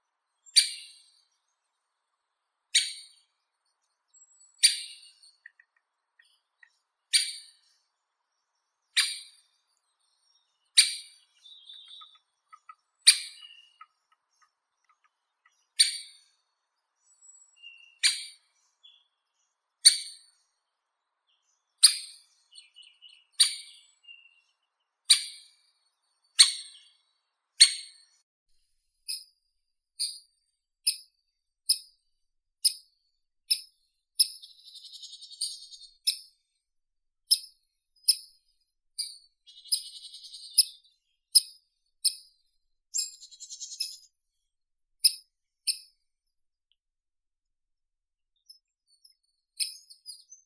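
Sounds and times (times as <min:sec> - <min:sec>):
great spotted woodpecker Dendrocopos major: 0:00.4 - 0:01.3, 0:02.7 - 0:03.3, 0:04.0 - 0:19.1, 0:19.8 - 0:20.3, 0:21.4 - 0:27.0, 0:27.6 - 0:28.2, 0:33.5 - 0:36.3, 0:37.3 - 0:38.4, 0:39.0 - 0:42.3, 0:42.9 - 0:44.1.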